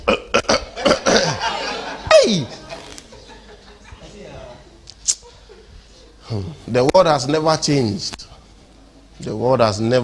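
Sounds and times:
harsh coughing before singing: 0.0 - 1.5
laughter: 0.4 - 4.4, 5.0 - 6.5
speech: 6.7 - 8.2, 9.2 - 10.0.

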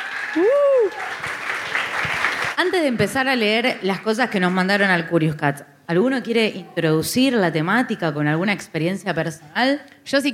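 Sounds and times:
audience applause: 0.0 - 2.6
speech: 0.4 - 1.3, 2.6 - 10.3.

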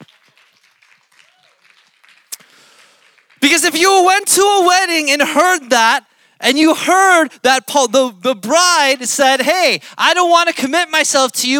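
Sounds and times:
audience applause: 0.0 - 3.7
speech: 3.5 - 11.5.

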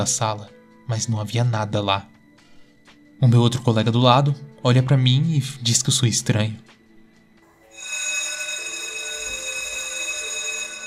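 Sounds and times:
speech: 0.0 - 2.1, 3.2 - 6.8
school electric bell ringing: 7.5 - 10.8.

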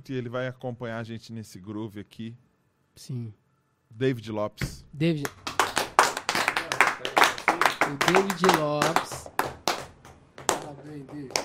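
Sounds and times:
speech: 0.0 - 5.4, 7.9 - 9.4, 10.8 - 11.4
people applauding clapping hands: 5.2 - 11.4.

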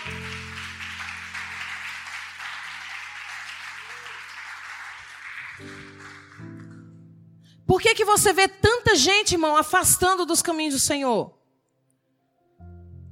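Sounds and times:
audience applauding: 0.0 - 7.0
speech: 7.7 - 11.4.

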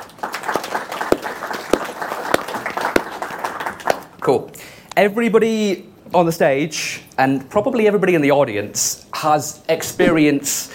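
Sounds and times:
audience applause at a live tech and engineering event: 0.0 - 4.0
speech: 4.2 - 10.7.

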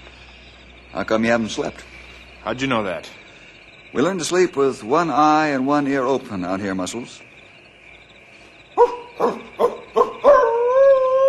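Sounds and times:
speech: 0.9 - 3.2, 3.9 - 7.3
wolf howling: 8.8 - 11.2.

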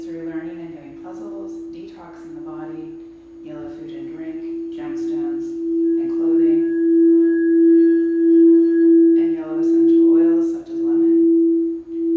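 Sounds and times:
sound bath ringing tone: 4.4 - 12.1.

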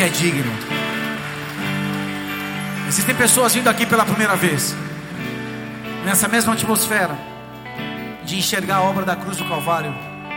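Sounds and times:
speech: 0.0 - 0.8, 2.9 - 5.3, 6.0 - 7.3, 8.3 - 10.1
audience applauding: 0.0 - 8.0.

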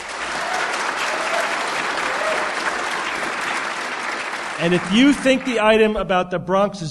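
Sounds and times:
audience applause: 0.0 - 5.8
speech: 4.6 - 6.9.

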